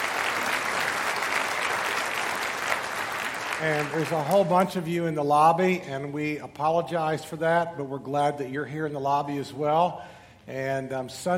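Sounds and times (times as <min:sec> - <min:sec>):
audience applause: 0:00.0 - 0:04.4
speech: 0:03.6 - 0:11.3.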